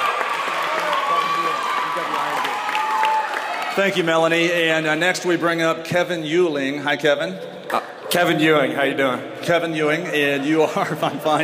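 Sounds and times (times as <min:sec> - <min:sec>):
audience applauding: 0:00.0 - 0:04.1
speech: 0:03.8 - 0:11.4.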